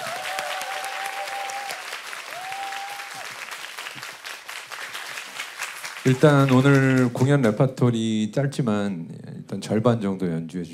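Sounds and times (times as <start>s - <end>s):
whistles or cheers: 0.0s - 3.3s
crowd applauding: 0.0s - 7.6s
speech: 6.0s - 10.7s.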